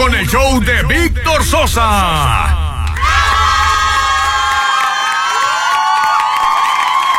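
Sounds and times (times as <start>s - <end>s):
speech: 0.3s - 2.5s
crowd applause and cheering: 2.5s - 7.1s.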